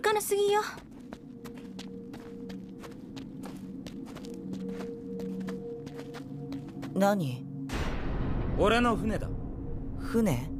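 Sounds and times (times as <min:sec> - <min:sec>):
speech: 0:00.1 - 0:00.9, 0:07.0 - 0:07.5, 0:08.6 - 0:09.4, 0:10.1 - 0:10.5
footsteps of people walking: 0:00.1 - 0:07.0.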